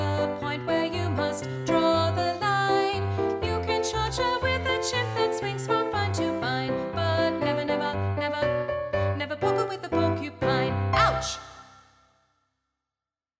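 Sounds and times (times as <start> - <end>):
soprano singing: 0.0 - 11.8.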